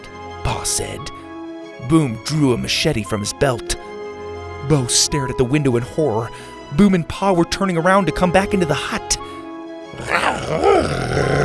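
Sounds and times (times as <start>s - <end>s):
speech: 0.6s - 1.2s, 1.8s - 3.8s, 4.6s - 9.4s, 10.0s - 11.4s
animal growling while wrestling: 10.0s - 11.4s.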